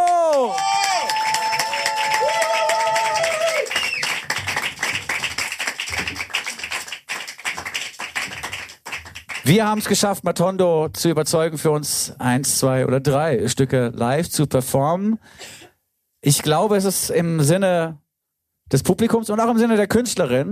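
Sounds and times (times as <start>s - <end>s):
audience applause: 0.0s - 9.6s
speech: 9.5s - 15.6s, 16.2s - 18.0s, 18.7s - 20.5s.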